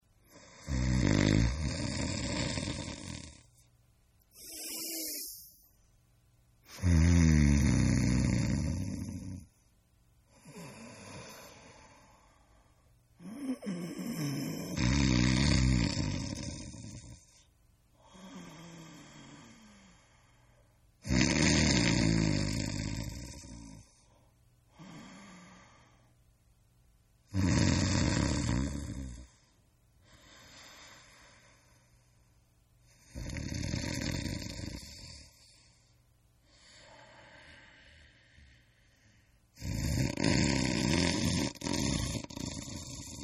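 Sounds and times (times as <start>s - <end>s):
person snoring: 0.3s - 3.7s, 4.3s - 5.7s, 6.7s - 9.6s, 10.3s - 12.4s, 13.2s - 20.3s, 21.0s - 24.1s, 27.3s - 31.9s, 32.9s - 35.8s, 36.5s - 43.2s.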